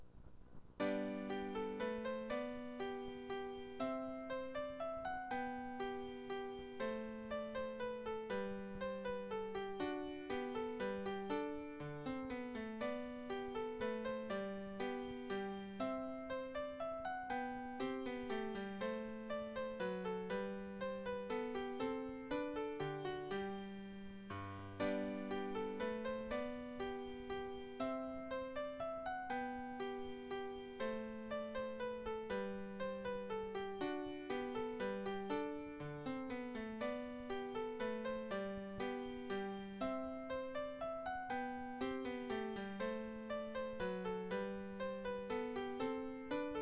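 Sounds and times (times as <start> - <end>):
piano minuet in G major: 0.8 - 46.6.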